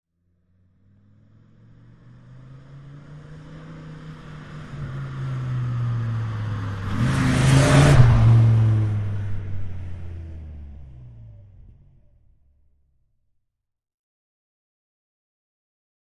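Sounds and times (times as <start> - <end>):
Dodge Ram passing fast with rev: 0.4 - 11.8.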